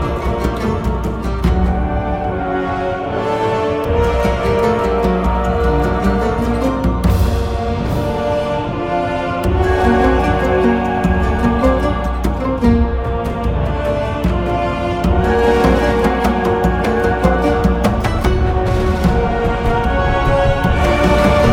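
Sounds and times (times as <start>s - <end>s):
boss combat game music: 0.0s - 21.5s.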